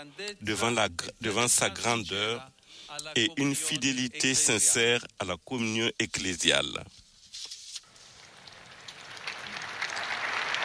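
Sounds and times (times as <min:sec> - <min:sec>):
speech: 0:00.0 - 0:07.0
large crowd applause after papal catechesis: 0:08.6 - 0:10.6.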